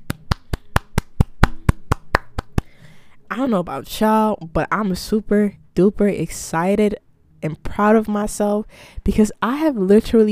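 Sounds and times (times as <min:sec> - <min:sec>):
hand clapping: 0:00.0 - 0:02.8
speech: 0:03.4 - 0:10.3.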